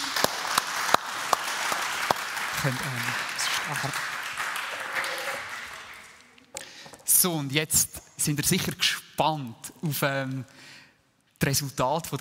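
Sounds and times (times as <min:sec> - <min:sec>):
steady applause from a crowd: 0:00.0 - 0:06.3
speech: 0:02.6 - 0:04.1, 0:07.2 - 0:10.8, 0:11.4 - 0:12.2.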